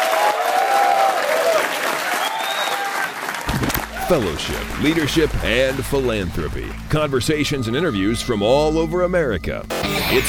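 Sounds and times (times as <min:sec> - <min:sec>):
faint whistles and cheers: 0:00.0 - 0:04.3
round of applause from a group: 0:00.0 - 0:06.8
speech: 0:04.1 - 0:10.2.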